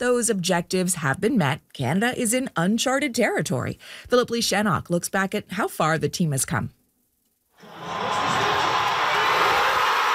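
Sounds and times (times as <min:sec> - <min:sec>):
speech: 0:00.0 - 0:06.8
watch party crowd cheering wildly: 0:07.6 - 0:10.1.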